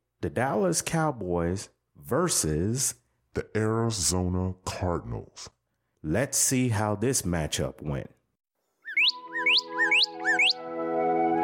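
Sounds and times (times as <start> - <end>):
speech: 0.2 - 8.2
bird chirps: 8.8 - 10.6.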